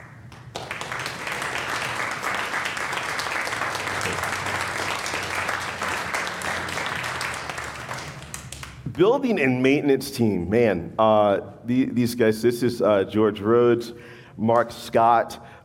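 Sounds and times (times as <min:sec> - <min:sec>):
large crowd applause: 0:00.0 - 0:08.8
speech: 0:09.0 - 0:15.6.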